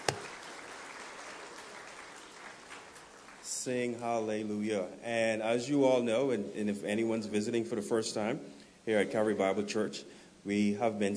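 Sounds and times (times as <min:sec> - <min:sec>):
audience applause for the youth praise team: 0:00.0 - 0:03.5
speech: 0:03.6 - 0:11.1.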